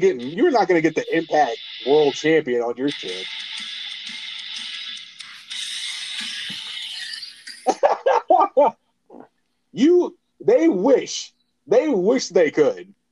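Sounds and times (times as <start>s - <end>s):
speech: 0.0s - 4.2s, 8.4s - 13.0s
phone ringtone: 0.0s - 7.8s
laughter: 7.6s - 8.7s.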